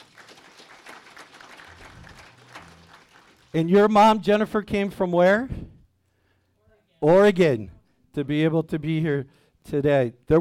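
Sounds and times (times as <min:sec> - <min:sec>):
audience applause: 0:00.0 - 0:03.6
speech: 0:03.5 - 0:05.6, 0:07.1 - 0:10.3.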